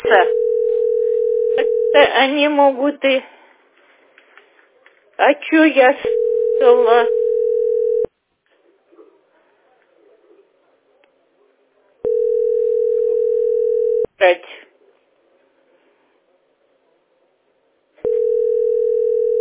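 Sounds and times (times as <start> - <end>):
telephone ringback tone, call not answered: 0.0 - 2.1, 6.0 - 8.1, 12.1 - 14.1, 18.0 - 19.4
speech: 2.0 - 3.4, 5.2 - 7.2, 14.2 - 14.5.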